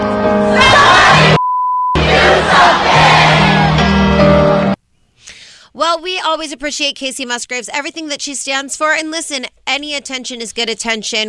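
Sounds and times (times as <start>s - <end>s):
crowd yelling together: 0.5s - 1.4s, 2.0s - 4.8s
speech: 5.9s - 11.2s.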